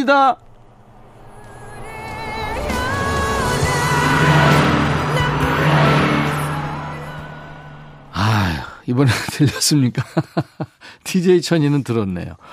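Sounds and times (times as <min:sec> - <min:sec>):
speech: 0:00.0 - 0:00.4, 0:08.9 - 0:12.5
car passing by: 0:00.0 - 0:08.8
music playing from a passing car: 0:02.1 - 0:07.2
laughter: 0:09.0 - 0:10.8.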